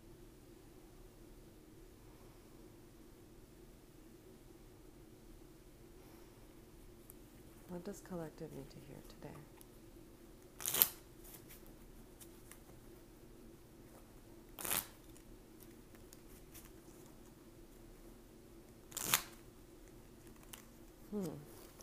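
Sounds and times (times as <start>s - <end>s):
faint steady hum: 0.0s - 21.8s
speech: 7.8s - 9.6s
tarot cards being shuffled: 10.6s - 12.8s, 14.6s - 17.3s, 18.9s - 19.4s, 20.2s - 21.8s.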